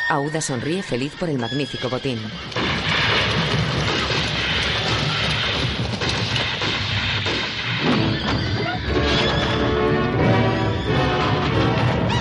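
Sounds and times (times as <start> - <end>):
speech: 0.1 - 3.4
horses neighing: 1.6 - 5.9
hoofbeats and clattering: 2.2 - 12.1
bangs and crashes: 2.4 - 12.1.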